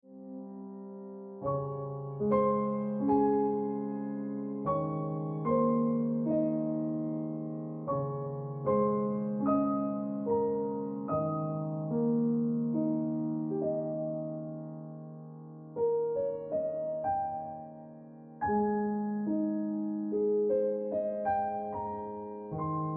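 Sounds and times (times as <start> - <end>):
piano music: 0.0 - 22.9.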